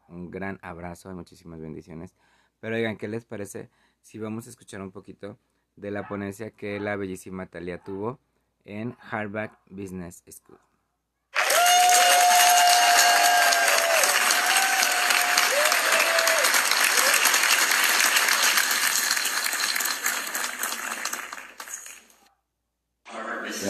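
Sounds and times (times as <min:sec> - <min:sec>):
speech: 0:00.1 - 0:10.7
audience applause: 0:11.4 - 0:22.2.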